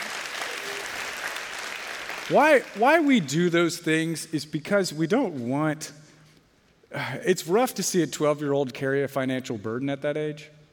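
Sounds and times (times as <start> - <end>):
audience clapping for donations to a junior high summer camp: 0.0 - 3.3
speech: 2.3 - 6.0, 6.9 - 10.6.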